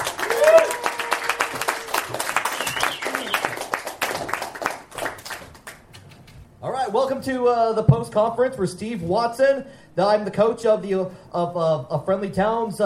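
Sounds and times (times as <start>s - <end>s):
audience voices and cheers: 0.0s - 4.4s
audience applause welcoming a performer onto a comedy stage: 0.0s - 5.9s
speech: 7.0s - 12.8s.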